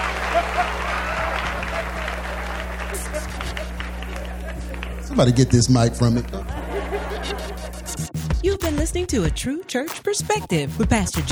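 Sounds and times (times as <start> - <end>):
audience clapping: 0.0 - 6.4
laughter: 0.0 - 8.2
speech: 5.2 - 6.6, 8.9 - 11.2.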